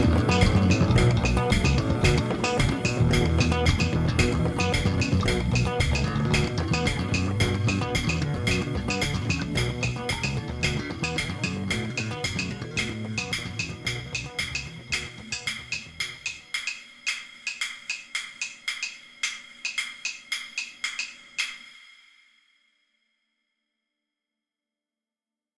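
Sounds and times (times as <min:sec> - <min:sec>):
ambience: 0:00.0 - 0:16.5
drums: 0:00.0 - 0:22.1.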